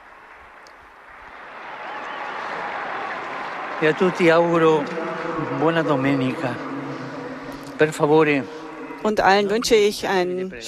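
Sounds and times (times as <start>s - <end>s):
audience applause for children: 0.0s - 8.2s
speech: 3.8s - 6.8s, 7.8s - 10.6s.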